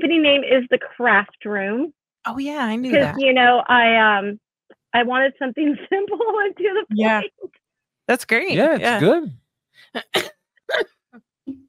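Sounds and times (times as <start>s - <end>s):
speech: 0.1s - 11.6s
person coughing: 2.9s - 3.2s, 10.0s - 10.9s.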